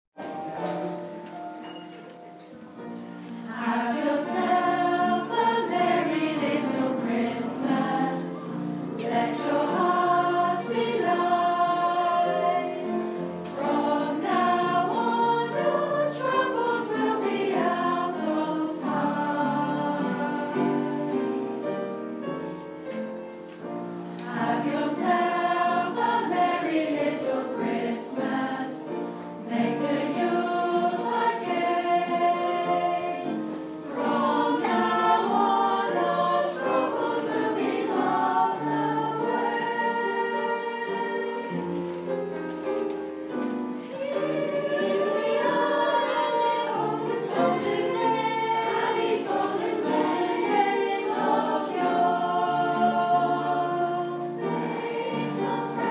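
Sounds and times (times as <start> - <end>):
teachers' choir singing: 2.4 - 55.8.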